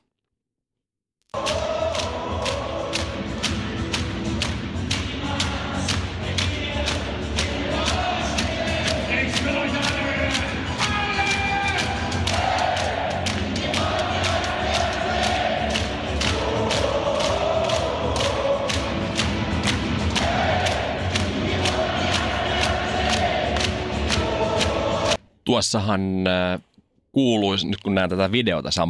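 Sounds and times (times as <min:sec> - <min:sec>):
rhythmic clapping or drum-like thumps: 0:01.3 - 0:25.2
ice hockey arena crowd roaring and cheering: 0:01.4 - 0:03.5, 0:05.2 - 0:25.2
speech: 0:25.5 - 0:28.8.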